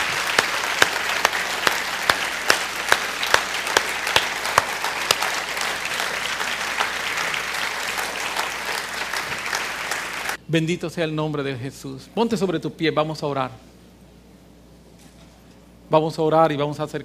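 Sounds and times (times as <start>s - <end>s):
audience applause: 0.0s - 10.4s
speech: 10.5s - 13.7s, 15.9s - 17.0s.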